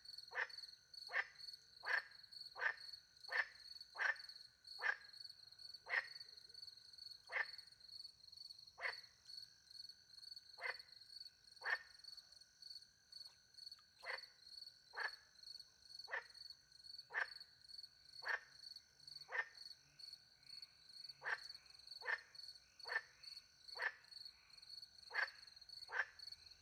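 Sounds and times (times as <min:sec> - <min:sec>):
frog croaking: 0:00.3 - 0:05.1, 0:05.8 - 0:06.3, 0:07.2 - 0:07.7, 0:08.8 - 0:09.1, 0:10.6 - 0:10.9, 0:11.6 - 0:12.0, 0:14.0 - 0:17.5, 0:18.1 - 0:26.5.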